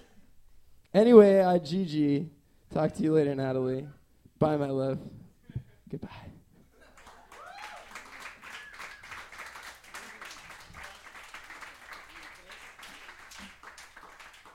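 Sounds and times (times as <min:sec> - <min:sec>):
speech: 0:01.0 - 0:05.2, 0:05.9 - 0:06.3
big applause: 0:06.9 - 0:14.5.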